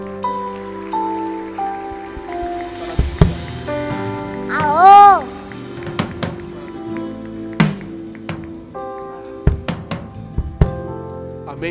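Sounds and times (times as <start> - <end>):
audience applauding: 0.0 - 9.4.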